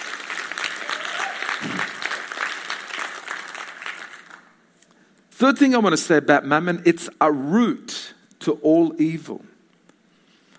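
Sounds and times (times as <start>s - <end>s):
people clapping: 0.0s - 4.7s
speech: 5.4s - 9.5s.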